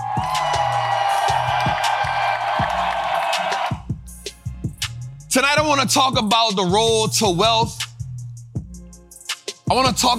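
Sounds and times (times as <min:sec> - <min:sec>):
audience clapping and cheering: 0:00.0 - 0:03.8
music with thumping low beat: 0:00.0 - 0:10.1
speech: 0:05.3 - 0:07.8, 0:09.7 - 0:10.1.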